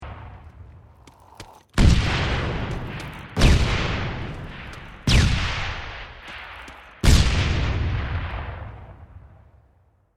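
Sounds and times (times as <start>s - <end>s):
frag grenade explosion: 1.8s - 9.4s.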